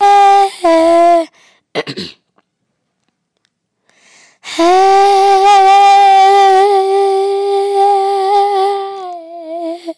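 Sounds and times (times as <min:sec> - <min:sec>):
opera singing: 0:00.0 - 0:01.3, 0:04.4 - 0:09.9.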